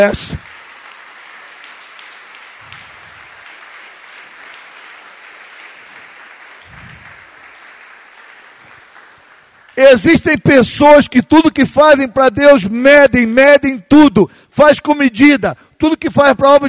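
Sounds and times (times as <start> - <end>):
speech: 0.0 - 0.4, 9.8 - 16.6
audience applause: 0.0 - 9.8.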